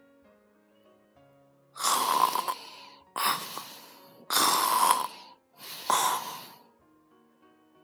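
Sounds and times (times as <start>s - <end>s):
loud snoring: 1.8s - 6.6s.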